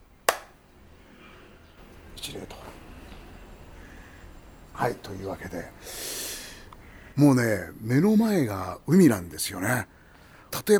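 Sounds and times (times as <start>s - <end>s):
hand claps at a Shinto shrine: 0.0s - 0.6s
speech: 2.2s - 2.8s, 4.8s - 6.2s, 7.2s - 10.7s.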